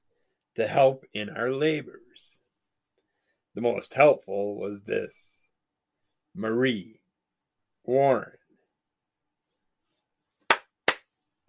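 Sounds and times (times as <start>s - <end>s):
speech: 0.6s - 2.4s, 3.6s - 5.4s, 6.4s - 7.0s, 7.9s - 8.4s
sharp hand claps: 10.4s - 11.1s.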